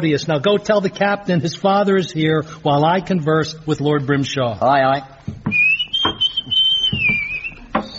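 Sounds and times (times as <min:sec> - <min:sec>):
speech: 0:00.0 - 0:05.6
tuneless whistling: 0:05.5 - 0:07.9.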